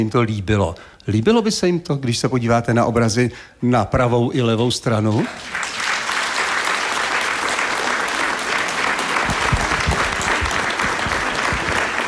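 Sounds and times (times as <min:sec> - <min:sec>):
speech: 0:00.0 - 0:05.6
audience applause: 0:05.2 - 0:12.0.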